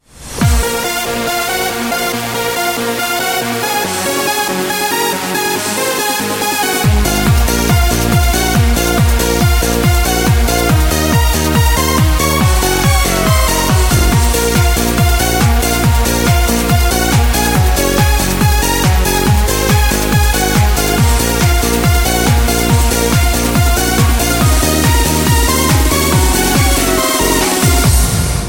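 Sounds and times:
dance house ringtone: 0:00.5 - 0:28.0.

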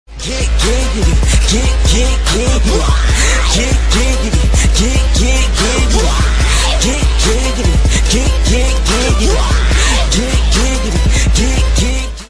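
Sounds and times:
chorus singing: 0:00.2 - 0:12.2.

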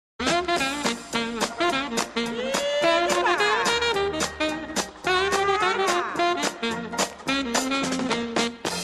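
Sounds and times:
orchestra playing happy music: 0:00.4 - 0:08.8.

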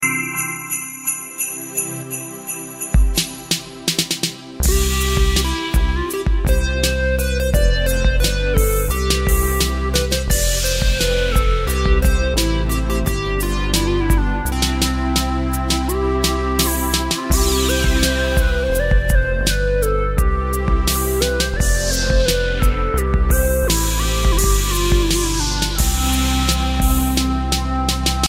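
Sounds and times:
hip hop music: 0:00.0 - 0:28.2.

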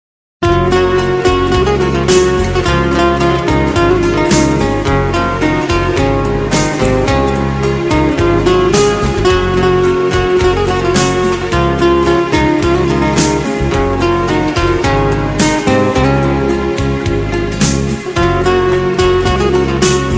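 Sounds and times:
Turkish folk guitar playing: 0:00.4 - 0:20.1.

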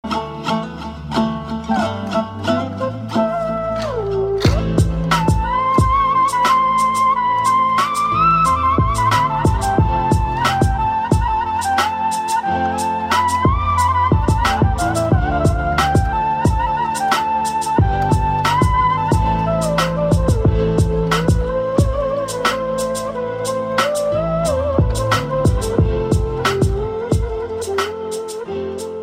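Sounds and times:
dombra remix music: 0:00.0 - 0:29.0.

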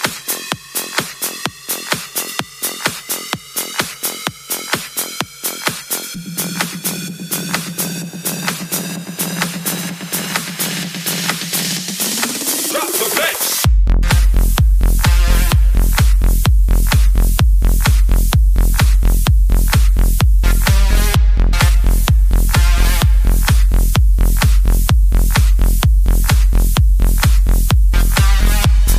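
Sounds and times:
drop beats: 0:00.0 - 0:28.9.

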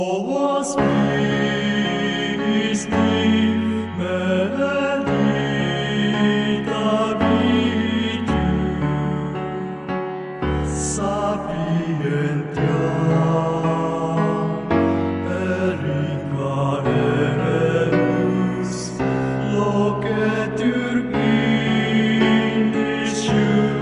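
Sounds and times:
chorus singing: 0:00.0 - 0:23.8.

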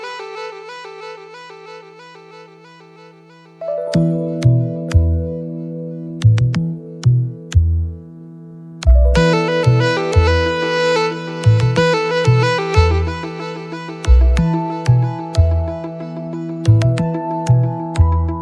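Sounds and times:
ringtone music: 0:03.5 - 0:08.0, 0:08.8 - 0:18.4.

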